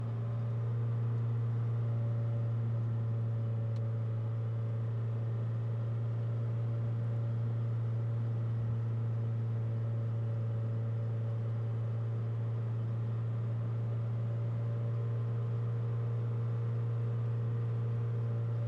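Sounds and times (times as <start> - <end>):
Citroen C5 exhaust driving at steady RPMs: 0.0 - 18.6.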